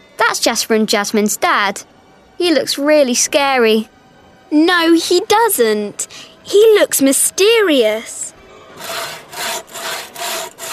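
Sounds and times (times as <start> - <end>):
speech: 0.3 - 8.2
saw rasping through wood in a sawing-a-woman-in-half trick: 8.8 - 10.7.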